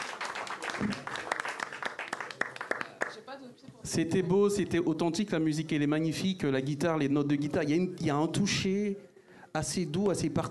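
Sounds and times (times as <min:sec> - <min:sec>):
audience applause: 0:00.0 - 0:03.2
speech: 0:03.9 - 0:10.5.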